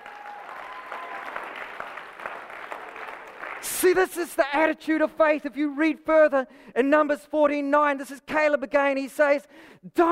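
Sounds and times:
audience clapping: 0:00.0 - 0:04.3
speech: 0:03.6 - 0:10.1.

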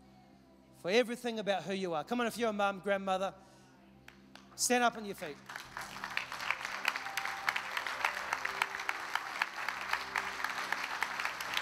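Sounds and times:
speech: 0:00.8 - 0:03.5, 0:04.6 - 0:05.7
audience clapping: 0:04.1 - 0:11.6.

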